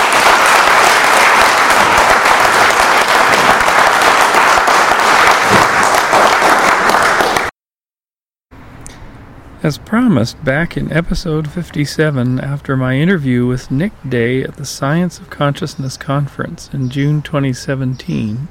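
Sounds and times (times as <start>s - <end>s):
audience applause: 0.0s - 7.5s
speech: 9.6s - 18.4s.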